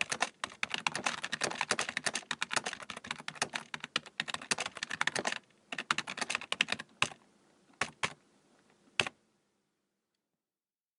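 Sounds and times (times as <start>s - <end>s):
typing on a keyboard: 0.0s - 7.2s, 7.8s - 8.2s.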